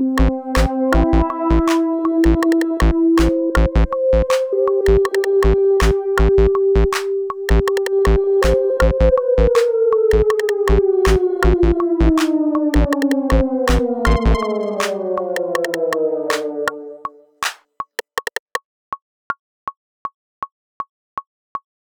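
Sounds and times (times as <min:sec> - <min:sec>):
backing track music: 0:00.0 - 0:17.6
click track: 0:01.6 - 0:18.6.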